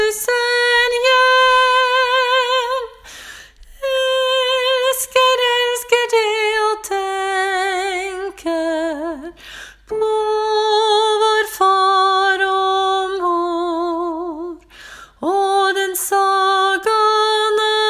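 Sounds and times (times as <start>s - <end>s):
soprano singing: 0.0s - 3.1s, 3.7s - 17.8s.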